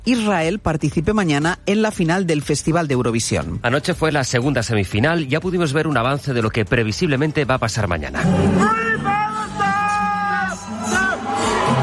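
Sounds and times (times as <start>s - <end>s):
speech: 0.0s - 9.1s
crowd booing in the Malmö arena during Israel's Eurovision semi-final performance: 8.2s - 11.8s.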